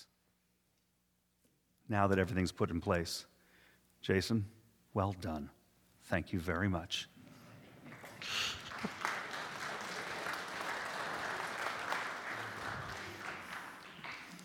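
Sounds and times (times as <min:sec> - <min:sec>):
speech: 0:01.9 - 0:03.3, 0:04.0 - 0:07.1
audience applauding: 0:07.6 - 0:14.4.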